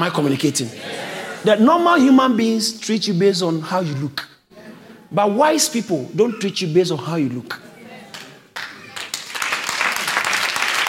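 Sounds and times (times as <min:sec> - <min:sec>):
speech: 0:00.0 - 0:04.3, 0:05.1 - 0:07.7
audience clapping: 0:08.1 - 0:10.8.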